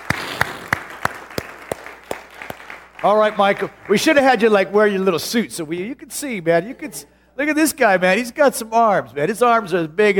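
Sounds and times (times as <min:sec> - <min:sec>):
audience clapping welcoming a guest to a church stage: 0:00.0 - 0:04.3
speech: 0:03.0 - 0:10.1.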